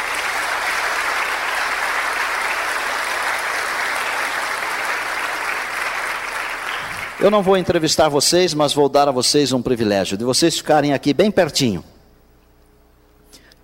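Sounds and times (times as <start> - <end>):
audience applause: 0.0 - 7.8
speech: 7.2 - 12.0.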